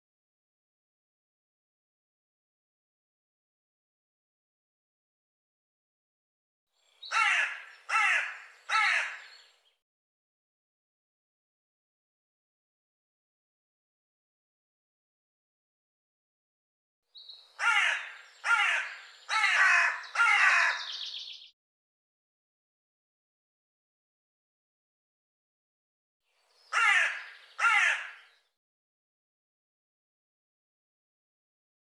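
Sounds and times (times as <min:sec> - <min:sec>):
bird cawing: 0:07.0 - 0:09.5, 0:17.6 - 0:21.4, 0:26.6 - 0:28.5.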